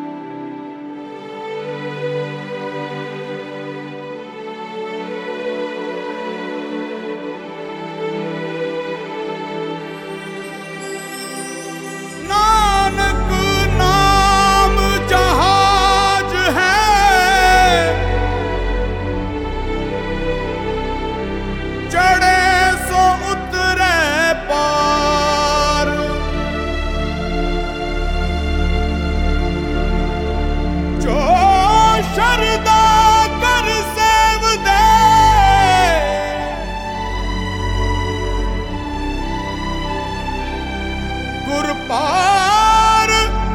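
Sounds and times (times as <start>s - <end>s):
Sikh Gurbani devotional singing: 1.0s - 43.5s.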